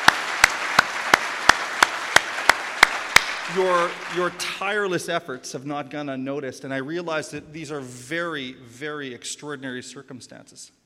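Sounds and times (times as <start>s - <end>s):
audience applause: 0.0s - 4.8s
sharp evenly spaced claps in a steady rhythm: 0.0s - 4.8s
speech: 3.5s - 10.8s.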